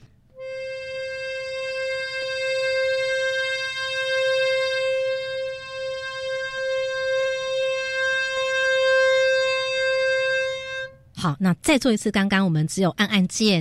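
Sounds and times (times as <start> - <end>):
reedy accordion note with bellows pulled and pushed: 0.0 - 11.1
low rumbling hum: 0.0 - 11.2
speech: 11.2 - 13.5.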